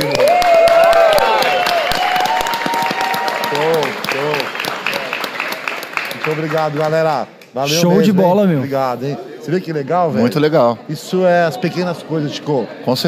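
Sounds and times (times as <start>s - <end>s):
small group applauding: 0.0s - 7.2s
speech: 6.4s - 13.0s.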